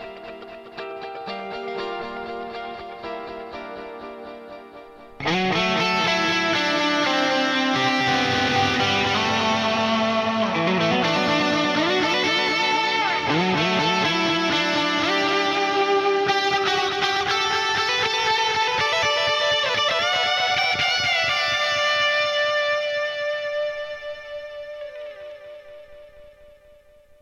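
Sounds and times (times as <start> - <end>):
guitar through Dynacord PDD 14 modulated delay: 0.0 - 27.2.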